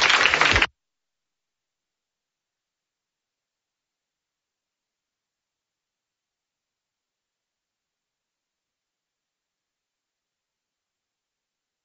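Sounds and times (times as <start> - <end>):
audience applause: 0.0 - 0.7.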